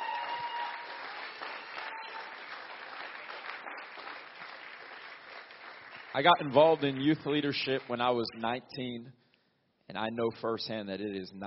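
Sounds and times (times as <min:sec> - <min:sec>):
audience applause: 0:00.0 - 0:08.3
speech: 0:06.2 - 0:09.2, 0:09.9 - 0:11.4.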